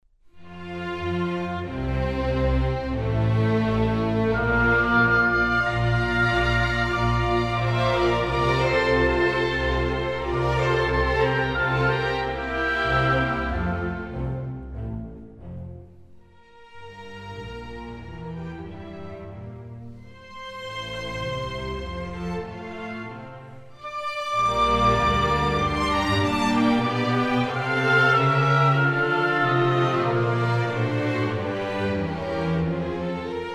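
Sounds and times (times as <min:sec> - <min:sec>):
cello: 0:00.3 - 0:33.5
violin: 0:00.3 - 0:33.5
oboe: 0:03.7 - 0:14.6, 0:23.8 - 0:31.8.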